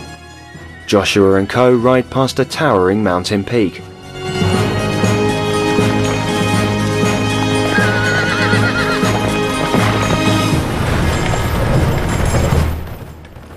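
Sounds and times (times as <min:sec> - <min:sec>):
speech: 0:00.9 - 0:03.9
horses' hooves clip-clopping beside a stagecoach: 0:04.5 - 0:13.5
horses neighing: 0:05.8 - 0:10.9.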